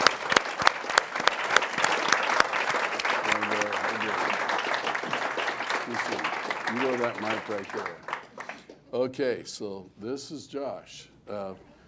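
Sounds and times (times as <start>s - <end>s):
audience applause: 0.0s - 8.7s
speech: 7.0s - 8.1s, 8.9s - 11.7s.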